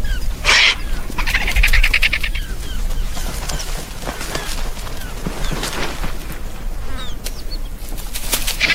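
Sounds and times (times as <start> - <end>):
vultures squawking and hissing: 0.0 - 7.8, 8.4 - 8.7
vultures flapping wings at a carcass: 0.5 - 8.7.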